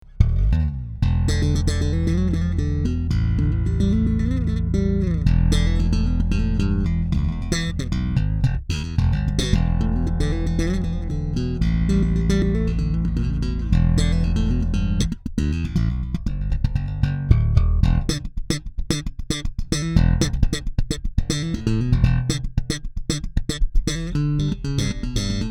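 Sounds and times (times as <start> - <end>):
active slap bass playing: 0.0 - 25.4.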